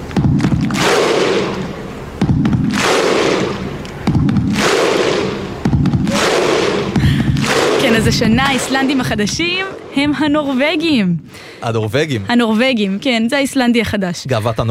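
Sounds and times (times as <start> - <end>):
stadium football crowd Viking-style thunderclap chant: 0.2 - 9.6
stadium crowd roar: 0.6 - 9.0
speech: 8.0 - 14.6.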